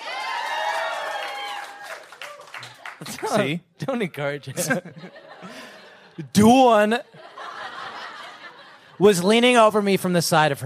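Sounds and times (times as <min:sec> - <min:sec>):
crowd applause: 0:00.0 - 0:03.6
speech: 0:03.0 - 0:05.6, 0:06.2 - 0:07.2, 0:09.0 - 0:10.6
laughter: 0:04.4 - 0:09.4.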